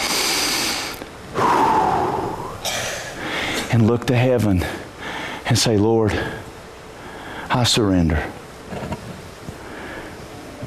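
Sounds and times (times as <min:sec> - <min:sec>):
deep breath taken during a sermon: 0:00.0 - 0:03.7, 0:07.0 - 0:07.5
speech: 0:03.8 - 0:04.8, 0:05.5 - 0:06.4, 0:07.5 - 0:08.8.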